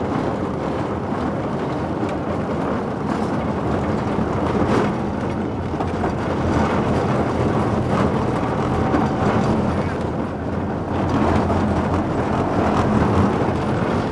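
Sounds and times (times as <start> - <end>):
train at Spreepark: 0.0 - 14.1.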